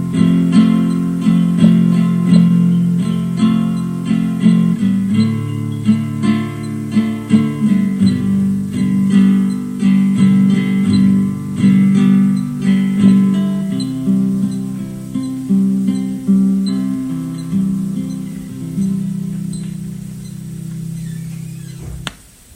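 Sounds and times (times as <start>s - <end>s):
guitar backing track: 0.0s - 22.1s.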